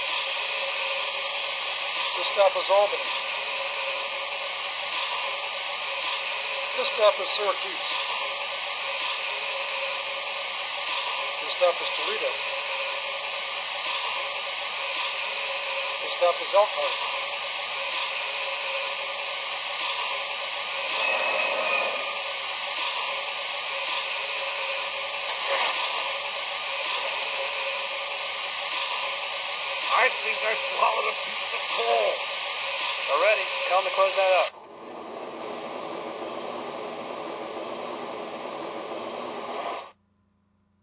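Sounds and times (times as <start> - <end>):
trains: 0.0 - 40.0.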